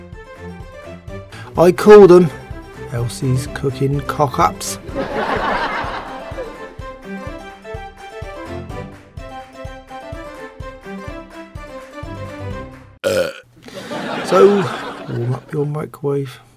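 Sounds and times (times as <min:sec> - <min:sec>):
speech: 0:01.6 - 0:05.2, 0:14.3 - 0:16.5
laughter: 0:04.9 - 0:06.6, 0:13.7 - 0:15.5
long deep rumbling burp and rhythmic belching: 0:13.0 - 0:13.4.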